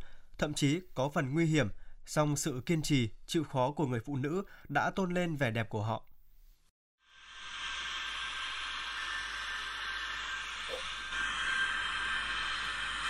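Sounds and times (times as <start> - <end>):
speech: 0.4 - 6.1
machinery running at the Ha Bac nitrogen fertilizer and chemical plant: 7.1 - 13.0.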